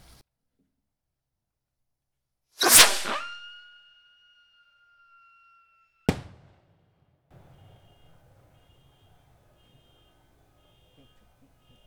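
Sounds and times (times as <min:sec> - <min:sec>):
La Llorona Rocket firework crackling: 0:02.6 - 0:03.9
La Llorona Rocket firework whooshing launch and whistle: 0:02.6 - 0:05.9
La Llorona Rocket firework bang: 0:06.1 - 0:08.0.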